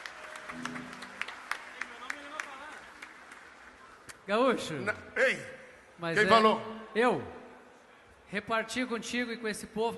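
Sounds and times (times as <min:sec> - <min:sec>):
audience applause: 0:00.0 - 0:04.1
speech: 0:04.3 - 0:07.4, 0:08.3 - 0:09.9.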